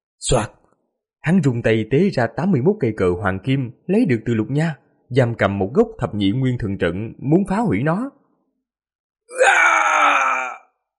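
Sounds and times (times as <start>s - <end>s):
speech: 0.2s - 0.6s, 1.2s - 8.2s, 9.4s - 9.7s
gravely wounded sect master screaming in agony: 9.3s - 10.8s.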